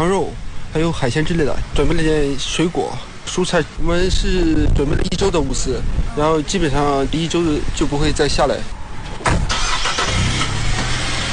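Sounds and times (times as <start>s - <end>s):
speech: 0.0s - 8.8s
supply vehicle engine cranking and idling: 9.3s - 11.3s.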